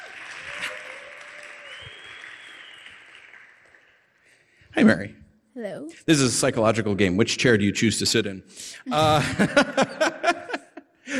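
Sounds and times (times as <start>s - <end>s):
audience applause: 0.0s - 4.4s
speech: 4.8s - 10.2s
laughter: 8.6s - 11.1s.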